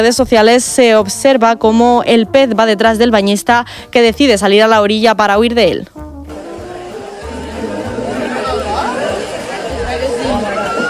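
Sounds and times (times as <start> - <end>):
speech: 0.0 - 6.0
people screaming at a beach: 7.0 - 10.8.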